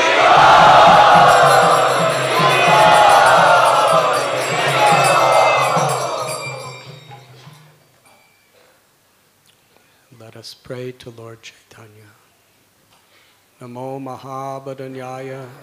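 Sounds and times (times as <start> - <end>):
large crowd chanting in welcome at a Gaur Purnima gathering: 0.0 - 7.3
speech: 10.9 - 12.2, 13.6 - 15.6.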